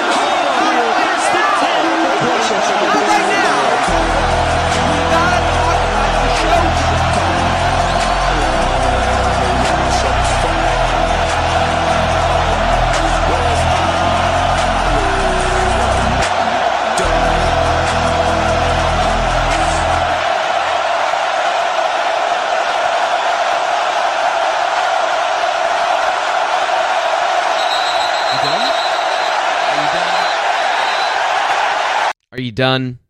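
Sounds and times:
huge football stadium crowd roaring: 0.0s - 32.2s
speech: 32.6s - 33.0s.

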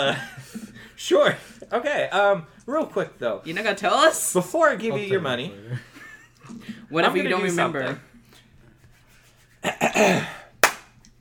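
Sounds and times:
speech: 0.0s - 8.1s, 9.7s - 10.4s
hands rubbing: 8.2s - 9.8s
hands clapping: 10.6s - 11.1s.

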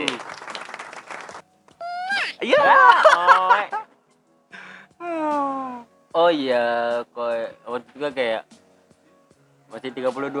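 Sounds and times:
applause: 0.0s - 1.5s
laughter: 0.0s - 4.0s
speech: 6.3s - 8.6s, 9.8s - 10.3s.

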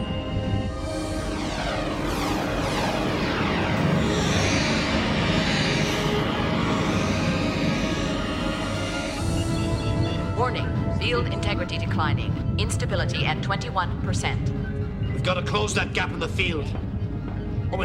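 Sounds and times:
shifting whining tones: 0.0s - 13.1s
spaceship thrusters engaging in transit mode on a partial field: 0.3s - 11.9s
speech: 10.6s - 16.8s.

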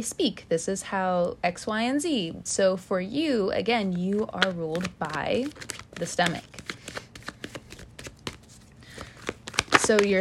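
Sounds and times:
speech: 0.0s - 6.6s, 9.9s - 10.1s
tarot cards shuffled and drawn: 4.0s - 10.1s.

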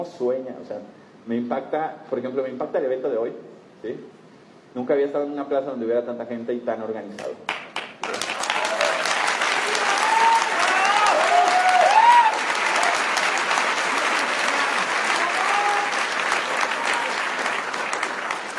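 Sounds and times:
speech: 0.0s - 8.3s
large crowd applauding at a plaza event: 7.5s - 18.5s
people cheering: 8.0s - 18.5s.

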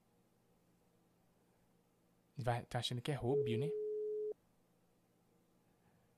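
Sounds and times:
speech: 2.4s - 3.8s
telephone busy signal beep: 3.4s - 4.4s.

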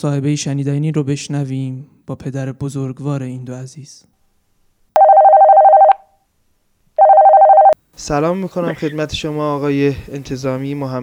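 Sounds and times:
speech: 0.0s - 4.2s, 8.0s - 11.0s
telephone ringback tone as a radio host places a call: 5.0s - 6.1s, 7.0s - 7.8s.

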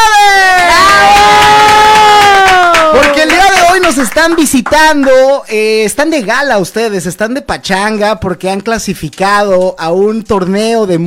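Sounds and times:
high whooping cry: 0.0s - 3.2s
crowd cheering: 0.0s - 4.3s
applause: 0.1s - 5.3s
speech: 4.2s - 11.0s.

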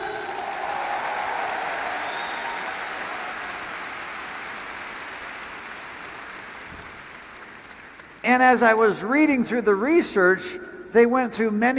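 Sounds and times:
audience applause: 0.0s - 8.3s
speech: 8.3s - 11.7s.

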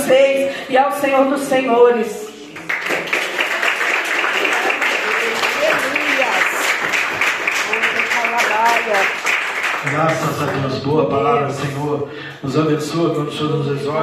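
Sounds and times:
speech: 0.1s - 2.3s, 9.8s - 14.0s
audience applause: 2.5s - 10.8s.

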